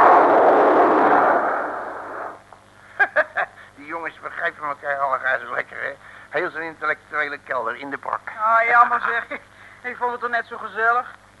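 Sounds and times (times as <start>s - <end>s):
bomb explosion: 0.0s - 2.5s
speech: 4.7s - 11.2s.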